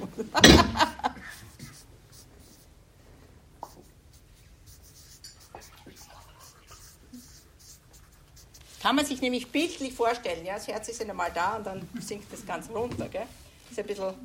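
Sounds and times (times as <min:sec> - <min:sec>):
speech: 0:00.2 - 0:00.9, 0:08.9 - 0:14.2
pen scratching as someone writes by hand: 0:03.8 - 0:08.8.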